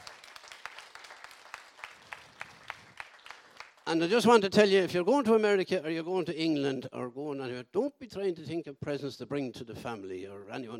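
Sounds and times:
audience applause: 0:00.0 - 0:03.9
speech: 0:03.9 - 0:10.7.

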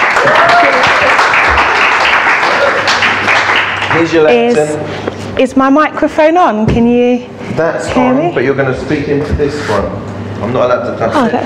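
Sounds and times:
audience applauding: 0:00.0 - 0:04.5
speech: 0:04.0 - 0:11.4.

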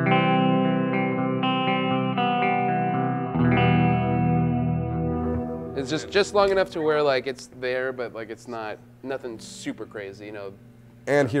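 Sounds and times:
clean electric guitar strumming chords with hall reverb: 0:00.0 - 0:07.5
speech: 0:05.8 - 0:11.3.

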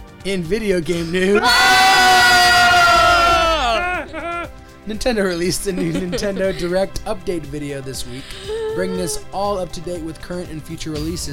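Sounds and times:
speech: 0:00.2 - 0:01.8, 0:04.8 - 0:11.3
people screaming loudly: 0:01.3 - 0:04.6
laughter: 0:02.6 - 0:04.6, 0:05.4 - 0:07.4, 0:08.3 - 0:09.3.

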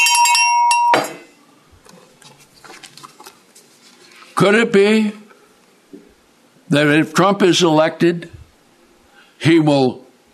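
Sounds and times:
small bright bell ringing: 0:00.0 - 0:01.3
rustling: 0:01.8 - 0:04.4
speech: 0:04.4 - 0:05.2, 0:06.7 - 0:08.4, 0:09.4 - 0:10.0.

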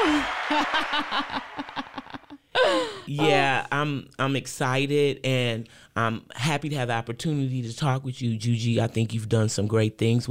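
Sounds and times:
canned applause sound effect: 0:00.0 - 0:02.3
crowd laughter: 0:00.0 - 0:02.4
speech: 0:00.5 - 0:02.0, 0:02.6 - 0:10.2.

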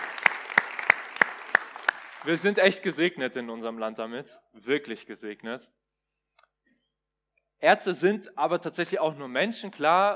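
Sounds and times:
audience applause: 0:00.0 - 0:02.6
speech: 0:02.2 - 0:05.8, 0:07.6 - 0:10.1.

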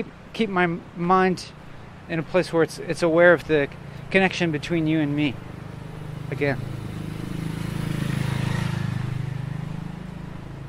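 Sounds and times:
speech: 0:00.0 - 0:05.5, 0:06.3 - 0:06.7
motorcycle passing by: 0:03.0 - 0:10.6.

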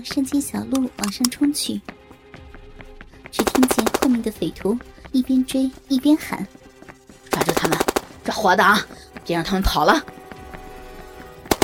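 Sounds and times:
speech: 0:00.0 - 0:02.0, 0:03.3 - 0:06.6, 0:07.4 - 0:10.2
gunfire: 0:03.4 - 0:04.2, 0:07.3 - 0:08.2.

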